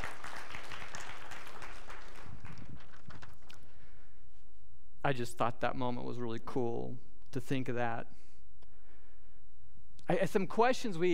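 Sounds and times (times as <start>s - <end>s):
crowd applause: 0.0s - 3.4s
speech: 5.0s - 8.2s, 10.1s - 11.1s.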